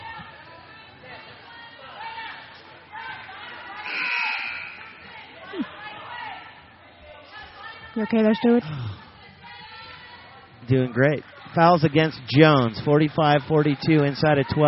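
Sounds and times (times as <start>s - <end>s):
referee whistles blowing: 3.8s - 5.3s
speech: 8.0s - 9.0s, 10.7s - 14.6s.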